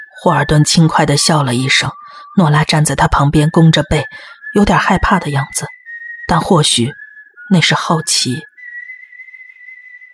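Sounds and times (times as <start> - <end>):
speech: 0.2 - 8.5
person whistling: 4.3 - 7.9, 8.5 - 10.1.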